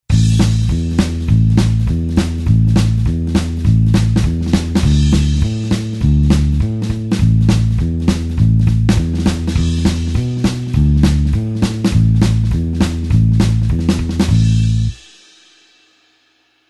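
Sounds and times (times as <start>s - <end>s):
blues bassline: 0.0s - 15.0s.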